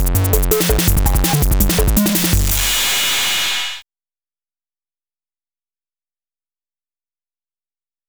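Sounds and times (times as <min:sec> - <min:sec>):
808 drum machine destruction: 0:00.0 - 0:03.8.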